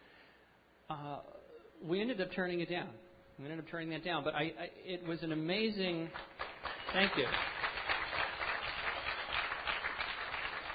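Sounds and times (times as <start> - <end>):
speech: 0.9 - 7.5
crowd clapping: 6.1 - 10.7.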